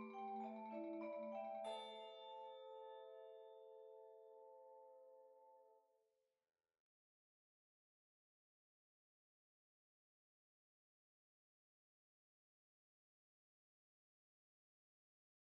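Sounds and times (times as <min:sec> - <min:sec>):
tubular bells: 0:00.0 - 0:05.4.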